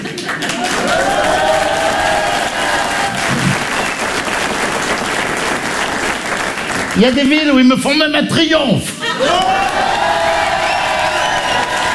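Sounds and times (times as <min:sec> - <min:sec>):
loud audience applause: 0:00.0 - 0:07.7, 0:09.0 - 0:11.9
voices cheering: 0:00.6 - 0:04.0, 0:09.0 - 0:11.9
speech: 0:07.0 - 0:09.8.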